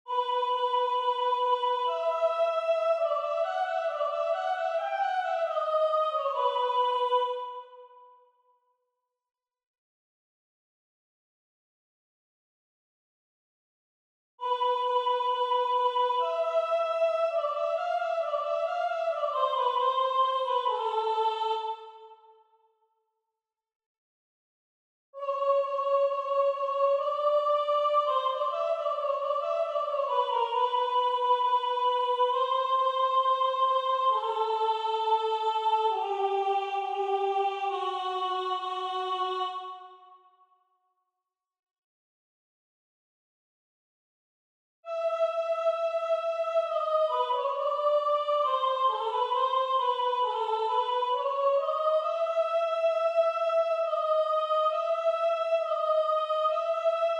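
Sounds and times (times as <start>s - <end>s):
soprano singing: 0.1s - 7.8s, 14.4s - 22.3s, 25.2s - 40.0s, 44.9s - 57.1s.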